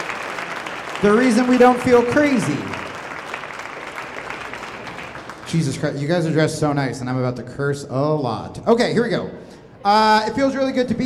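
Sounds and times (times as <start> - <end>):
audience clapping: 0.0 - 6.4
speech: 1.0 - 2.8, 5.5 - 11.0.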